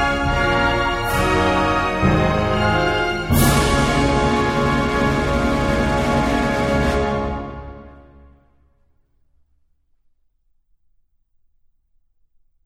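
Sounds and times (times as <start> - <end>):
national anthem: 0.0 - 8.4.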